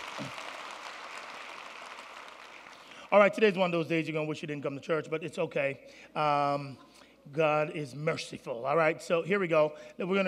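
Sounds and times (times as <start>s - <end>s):
church congregation applause welcoming newcomers: 0.0s - 3.4s
speech: 3.1s - 10.2s.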